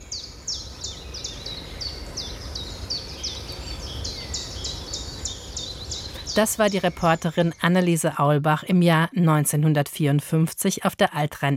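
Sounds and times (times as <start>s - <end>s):
birds singing in spring: 0.0s - 8.7s
speech: 6.4s - 11.5s.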